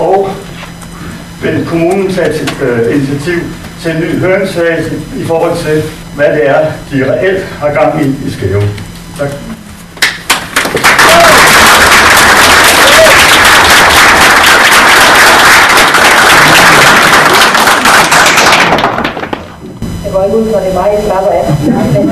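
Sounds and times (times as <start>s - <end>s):
speech: 1.4s - 9.5s, 20.1s - 22.0s
audience clapping: 10.0s - 19.5s.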